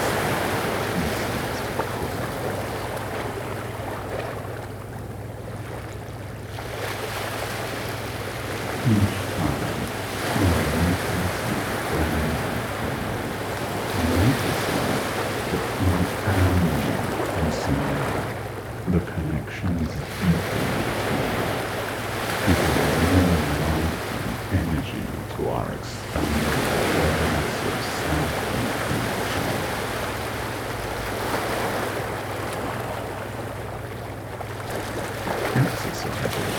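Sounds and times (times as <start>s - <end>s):
ocean waves: 0.0s - 36.5s.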